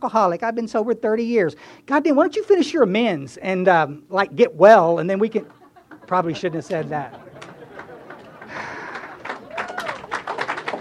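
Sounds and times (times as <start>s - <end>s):
speech: 0.0s - 7.2s
laughter: 5.4s - 10.7s
audience applause: 7.2s - 10.7s.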